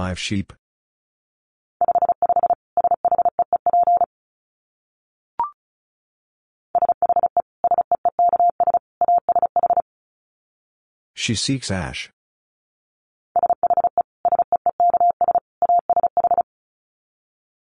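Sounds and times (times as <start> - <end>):
speech: 0.0 - 0.6, 11.2 - 12.2
Morse code tones at 35 wpm: 1.8 - 4.1, 6.8 - 9.8, 13.4 - 16.4.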